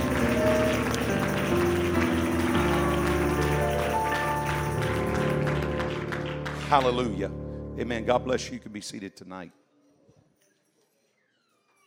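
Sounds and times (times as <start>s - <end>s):
audience clapping: 0.0s - 7.3s
organ or keyboard chords: 0.0s - 8.9s
speech: 6.7s - 9.6s.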